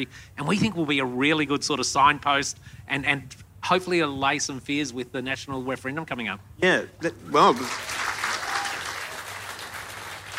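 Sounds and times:
speech: 0.0s - 8.0s
audience clapping: 7.4s - 10.3s.

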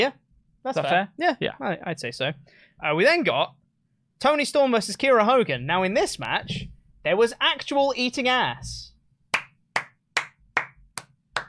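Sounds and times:
speech: 0.0s - 3.6s, 4.2s - 8.9s
hands clapping: 9.3s - 11.4s.

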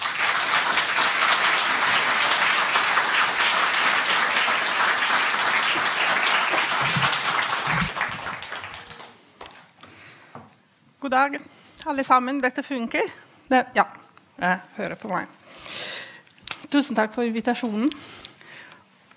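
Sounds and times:
audience applause: 0.0s - 9.5s
speech: 11.1s - 15.4s, 16.7s - 18.2s.

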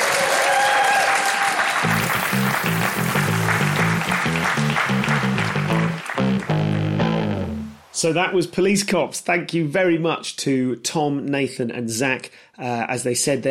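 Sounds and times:
audience applauding: 0.0s - 7.5s
speech: 8.0s - 13.4s.

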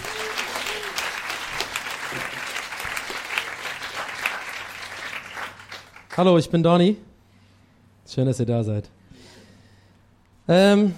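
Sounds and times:
audience applause: 0.0s - 6.2s
speech: 6.2s - 7.1s, 8.1s - 9.0s, 10.5s - 10.9s.

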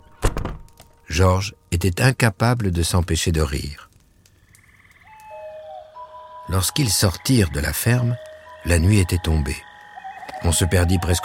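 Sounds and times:
speech: 1.1s - 3.8s, 6.5s - 9.7s, 10.4s - 11.2s
toads croaking: 4.3s - 11.2s.

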